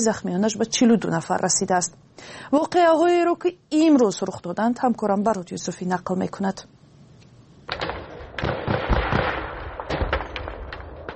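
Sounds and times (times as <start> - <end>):
speech: 0.0 - 6.8
artillery fire at the Tajikistan Kyrgyzstan border: 7.7 - 11.1
gunfire at the Tajikistan Kyrgyzstan border: 7.7 - 11.1.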